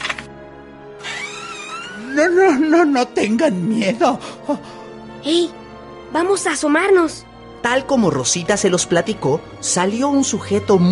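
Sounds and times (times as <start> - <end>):
door slowly creaking open: 1.1 - 2.2
speech: 2.2 - 10.9.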